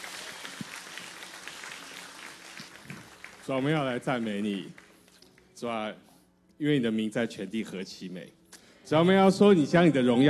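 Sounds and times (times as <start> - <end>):
audience applause: 0.0 - 5.0
speech: 3.5 - 4.8, 5.6 - 10.2.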